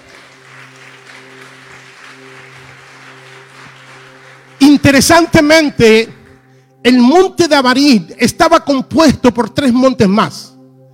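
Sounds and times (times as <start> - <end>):
audience applause: 0.0 - 5.2
speech: 4.7 - 6.2, 6.8 - 10.5.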